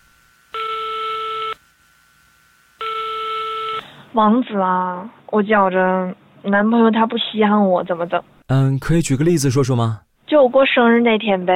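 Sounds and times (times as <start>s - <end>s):
long loud electronic telephone tones of a call ringing through: 0.5s - 1.6s, 2.8s - 3.8s
speech: 4.2s - 11.5s.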